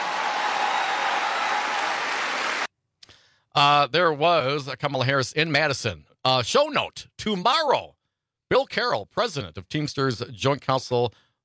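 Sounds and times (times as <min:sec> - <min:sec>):
large rally crowd cheering and applauding: 0:00.0 - 0:02.7
speech: 0:03.6 - 0:11.2.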